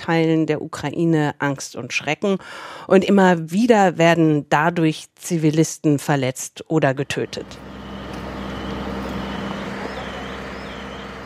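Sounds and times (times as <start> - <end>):
speech: 0.0 - 7.7
sirens of Ukrainian fire engines and ambulances: 7.2 - 11.2.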